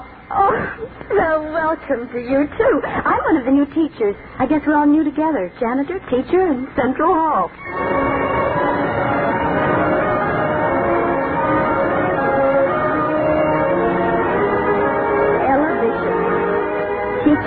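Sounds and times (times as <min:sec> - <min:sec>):
speech: 0:00.8 - 0:08.0
school bell ringing: 0:07.6 - 0:17.4.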